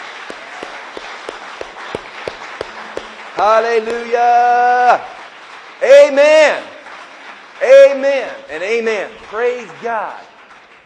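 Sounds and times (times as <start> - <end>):
audience hand clapping: 0.0 - 10.8
speech: 3.4 - 5.2, 5.8 - 6.7, 7.6 - 10.3.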